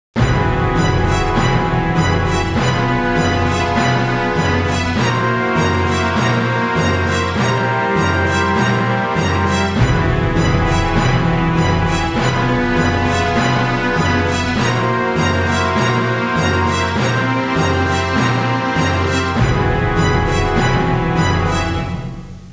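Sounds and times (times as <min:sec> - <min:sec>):
electronic music: 0:00.2 - 0:22.5.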